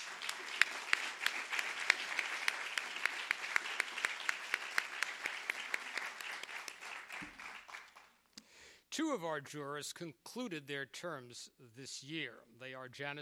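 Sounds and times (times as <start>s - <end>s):
audience round of applause: 0.0s - 8.2s
speech: 9.0s - 13.1s.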